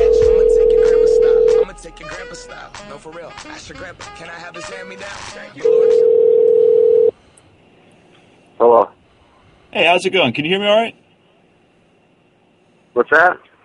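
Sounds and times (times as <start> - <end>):
telephone dial tone: 0.0 - 1.6, 5.6 - 7.1
speech: 3.0 - 6.7, 8.6 - 9.0, 9.7 - 11.0, 13.0 - 13.5.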